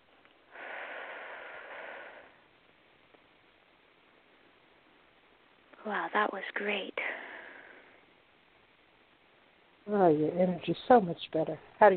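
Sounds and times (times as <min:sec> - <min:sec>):
deep inhale through the nose during a guided affirmation session: 0:00.5 - 0:02.5
speech: 0:05.8 - 0:07.1, 0:09.9 - 0:11.9.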